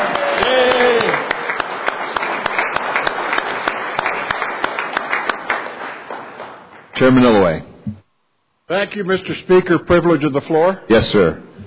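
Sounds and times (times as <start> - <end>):
members clapping in a legislative chamber: 0.0 - 7.5
speech: 7.0 - 8.0, 8.7 - 11.4.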